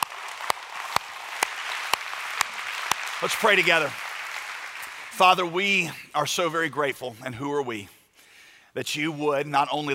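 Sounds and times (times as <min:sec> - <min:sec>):
audience clapping hands: 0:00.0 - 0:06.1
speech: 0:03.2 - 0:04.0, 0:05.2 - 0:08.0, 0:08.7 - 0:09.9.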